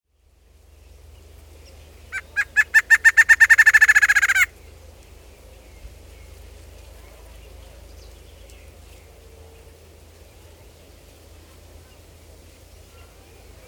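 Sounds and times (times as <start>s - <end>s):
barred antshrike song: 2.4s - 4.5s.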